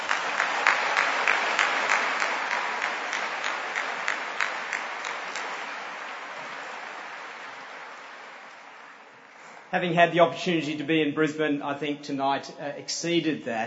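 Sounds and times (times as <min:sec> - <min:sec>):
audience applause: 0:00.0 - 0:10.5
speech: 0:09.7 - 0:13.6.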